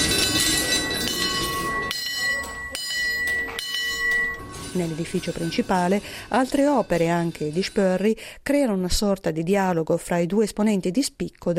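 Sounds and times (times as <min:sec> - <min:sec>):
tinkling bells: 0:00.0 - 0:07.8
sharp clanks: 0:00.0 - 0:08.0
kinetic sculptures clattering and rattling: 0:00.0 - 0:08.1
speech: 0:04.8 - 0:11.5.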